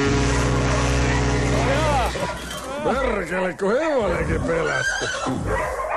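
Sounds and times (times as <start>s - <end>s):
foghorn blast: 0.0s - 2.7s
speech: 2.9s - 5.8s.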